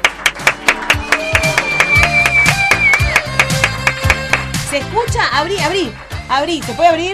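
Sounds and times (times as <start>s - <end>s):
audience applause: 0.0s - 4.6s
speech: 4.8s - 7.1s.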